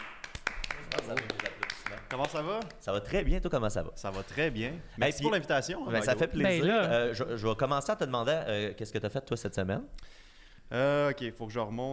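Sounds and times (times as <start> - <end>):
people clapping: 0.0 - 3.0
speech: 1.1 - 11.9.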